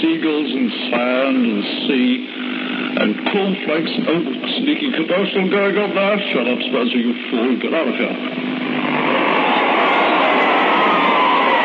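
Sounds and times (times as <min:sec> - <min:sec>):
speech: 0:00.0 - 0:08.8
crowd enjoying their evening at Carntyne Stadium greyhound racing: 0:08.6 - 0:11.6.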